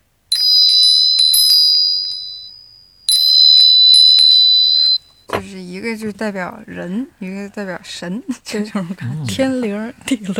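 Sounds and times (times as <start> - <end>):
small bell ringing: 0.3 - 5.3
speech: 5.8 - 10.3.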